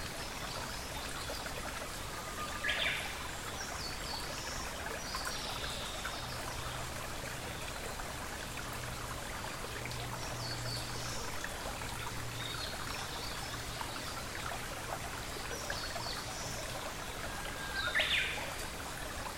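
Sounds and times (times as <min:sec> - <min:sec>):
rushing stream in a forest: 0:00.0 - 0:19.3.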